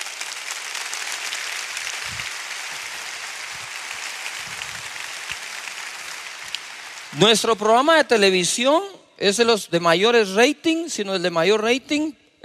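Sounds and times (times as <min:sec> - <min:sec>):
audience applause: 0:00.0 - 0:07.5
speech: 0:07.1 - 0:12.4.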